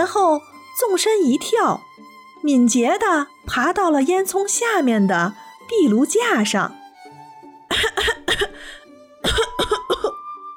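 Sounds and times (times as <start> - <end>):
speech: 0.0 - 6.8, 7.7 - 10.0
person coughing from smoke: 7.7 - 10.2.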